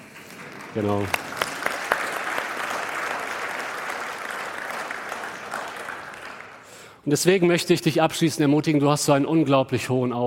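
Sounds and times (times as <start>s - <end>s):
audience applause: 0.0s - 7.0s
speech: 0.7s - 1.2s, 7.1s - 10.2s.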